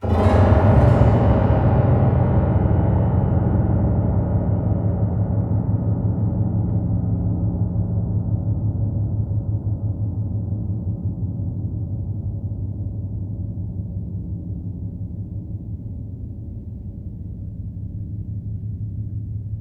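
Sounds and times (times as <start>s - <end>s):
strings: 0.0s - 5.1s
piano: 0.0s - 19.5s.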